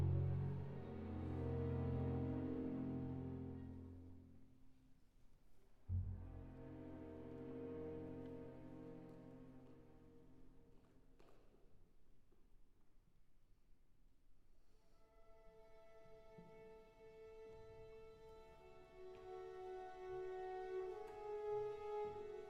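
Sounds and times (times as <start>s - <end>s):
string orchestra: 0.0s - 4.4s, 5.9s - 10.8s, 15.1s - 22.4s.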